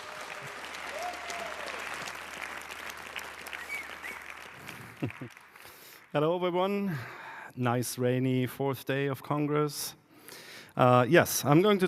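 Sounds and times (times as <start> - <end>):
faint whistles and cheers: 0.0 - 2.2, 3.2 - 4.7
sustained applause from a sizable audience: 0.0 - 6.1
speech: 5.0 - 5.5, 6.1 - 10.0, 10.8 - 11.8.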